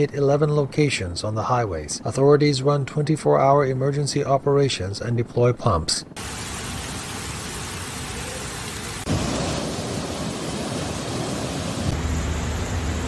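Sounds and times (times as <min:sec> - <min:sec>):
speech: 0:00.0 - 0:06.5
torrential rain in Barcelona and Valencia: 0:06.2 - 0:13.0.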